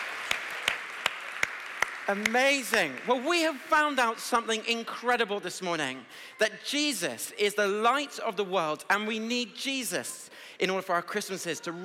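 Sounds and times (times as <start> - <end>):
round of applause: 0.0 - 4.7
speech: 2.1 - 11.8.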